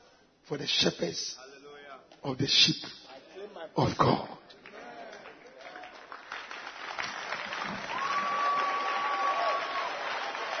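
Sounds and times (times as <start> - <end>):
speech: 0.5 - 1.4, 2.2 - 3.0, 3.7 - 4.4
audience applause: 4.6 - 10.5.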